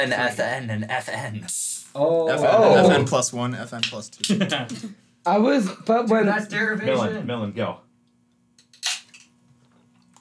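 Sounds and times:
speech: 0:00.0 - 0:07.8
drink can being opened: 0:08.7 - 0:09.3.

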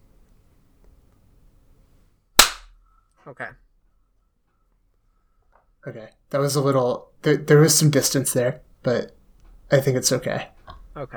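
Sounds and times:
hand clap for audio sync: 0:02.4 - 0:02.7
speech: 0:03.2 - 0:03.7, 0:05.8 - 0:11.1.

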